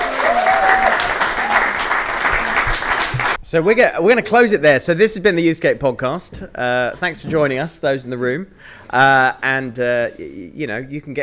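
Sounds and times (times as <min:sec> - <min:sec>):
whistle or cheer: 0:00.0 - 0:01.8
audience applause: 0:00.0 - 0:03.4
speech: 0:03.5 - 0:11.2.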